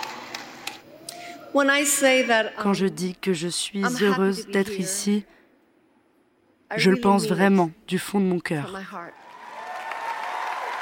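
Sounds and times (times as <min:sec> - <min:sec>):
speech: 0:01.5 - 0:05.4, 0:06.7 - 0:09.2
audience applause: 0:09.2 - 0:10.7
cheers and whistles: 0:09.3 - 0:10.7.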